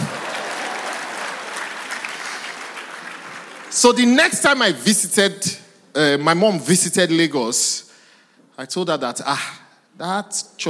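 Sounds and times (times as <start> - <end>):
audience clapping: 0.0 - 4.2
speech: 3.8 - 7.9, 8.6 - 10.6.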